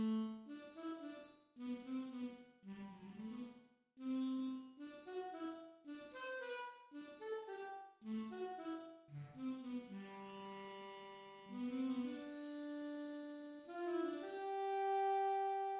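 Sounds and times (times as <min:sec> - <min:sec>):
transposed alto saxophone in a band: 0:00.0 - 0:15.7.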